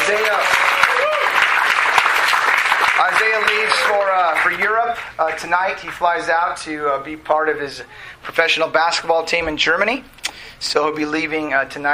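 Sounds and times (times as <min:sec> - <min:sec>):
applause for a newly married couple: 0:00.0 - 0:06.2
speech: 0:03.4 - 0:11.9.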